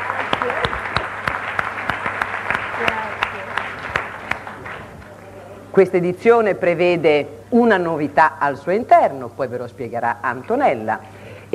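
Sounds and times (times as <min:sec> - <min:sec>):
audience applause: 0:00.0 - 0:05.2
speech: 0:05.8 - 0:11.5.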